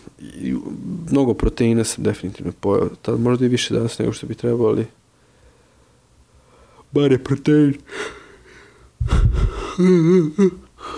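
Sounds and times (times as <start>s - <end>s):
speech: 1.1s - 5.0s, 6.9s - 8.2s, 9.0s - 10.9s
man yawning: 9.4s - 10.9s.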